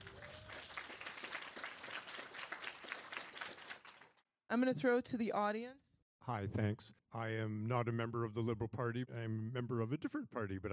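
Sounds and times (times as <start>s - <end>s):
audience applause welcoming an MLA as a speaker: 0.0s - 4.2s
speech: 4.5s - 10.7s.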